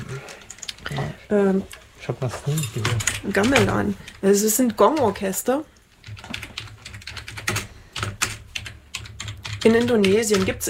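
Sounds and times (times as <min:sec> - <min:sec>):
speech: 0:01.3 - 0:06.2, 0:09.6 - 0:10.6
rapid typing on a computer keyboard: 0:02.8 - 0:05.3, 0:05.9 - 0:10.6.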